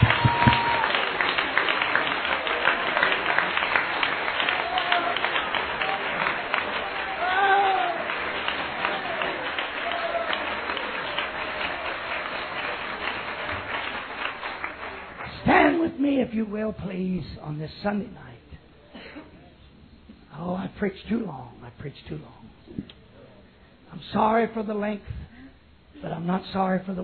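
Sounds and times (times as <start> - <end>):
audience clapping hands: 0.0 - 15.9
speech: 16.4 - 18.3, 20.8 - 22.4, 24.1 - 25.2, 26.0 - 27.0.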